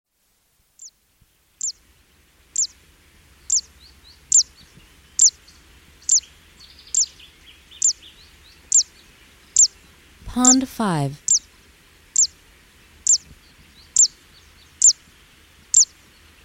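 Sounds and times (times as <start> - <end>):
background hiss: 0.1 - 16.4
Fan-tailed warbler calling: 1.6 - 1.8, 2.6 - 2.8, 3.4 - 11.5, 12.2 - 12.4, 13.0 - 15.0, 15.7 - 15.9
speech: 10.4 - 11.2.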